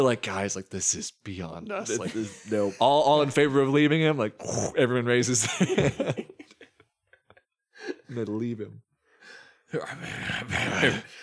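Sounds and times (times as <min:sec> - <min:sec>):
speech: 0:00.0 - 0:06.3, 0:08.1 - 0:11.2
laughter: 0:01.8 - 0:03.6, 0:05.2 - 0:08.2
man's gravelly growling voice: 0:04.4 - 0:05.0, 0:09.8 - 0:11.2.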